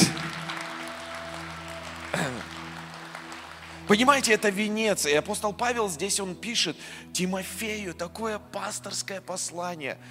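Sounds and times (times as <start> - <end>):
audience applause: 0.0 - 4.8
speech: 3.9 - 10.0.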